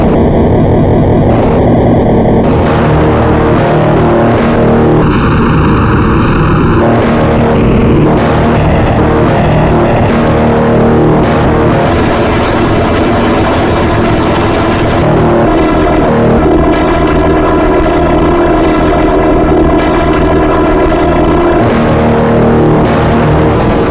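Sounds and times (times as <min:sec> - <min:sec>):
circuit bent guitar: 0:00.0 - 0:23.8.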